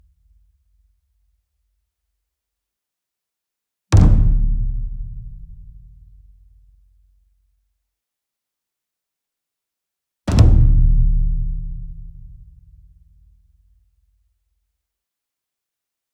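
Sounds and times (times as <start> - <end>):
ensemble taiko drum flam: 4.0 - 5.9, 10.3 - 12.9.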